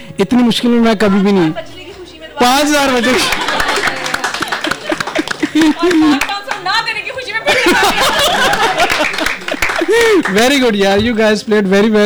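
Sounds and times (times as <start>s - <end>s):
speech: 0.2s - 1.8s, 2.4s - 3.4s, 5.5s - 12.0s
audience clapping for themselves after playing well: 2.5s - 11.0s
laughter: 2.9s - 6.6s, 7.4s - 10.4s.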